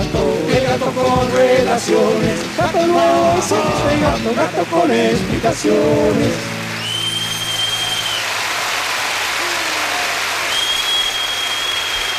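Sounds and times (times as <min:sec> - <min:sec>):
speech: 0:00.8 - 0:06.5
crowd applauding: 0:00.8 - 0:12.1
long high whistles: 0:06.8 - 0:08.4, 0:10.4 - 0:12.1.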